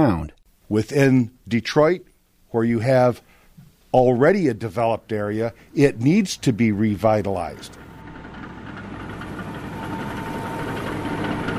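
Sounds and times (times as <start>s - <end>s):
speech: 0.0s - 3.3s, 3.9s - 7.8s
bulldozers and heavy construction machinery running: 6.6s - 11.5s.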